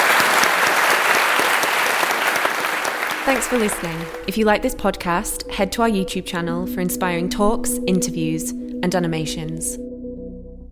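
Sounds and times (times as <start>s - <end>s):
audience applause: 0.0s - 4.3s
speech: 3.2s - 9.8s.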